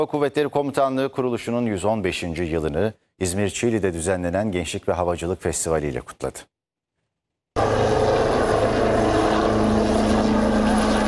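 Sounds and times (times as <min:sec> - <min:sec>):
speech: 0:00.0 - 0:06.6
military helicopter propeller drone at an air force anniversary air show: 0:07.6 - 0:11.0.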